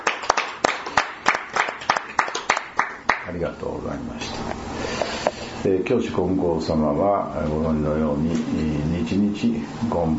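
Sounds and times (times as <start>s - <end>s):
group clapping to celebrate a birthday: 0.0s - 3.4s
speech: 3.3s - 5.0s, 5.6s - 10.1s.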